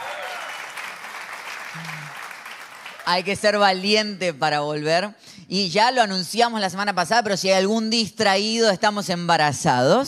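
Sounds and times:
church congregation clapping for returning visitors: 0:00.0 - 0:03.8
speech: 0:01.7 - 0:02.2, 0:03.1 - 0:10.0.

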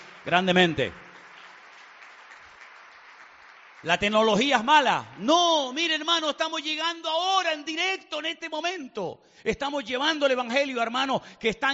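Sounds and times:
audience applause: 0:00.0 - 0:06.0
speech: 0:00.2 - 0:01.0, 0:03.8 - 0:11.7.

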